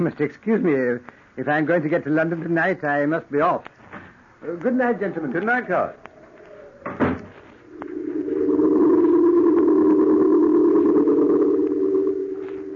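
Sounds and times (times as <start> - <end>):
speech: 0.0 - 3.8, 4.4 - 6.0
door shutting: 6.8 - 7.4
low droning hum: 7.4 - 12.7.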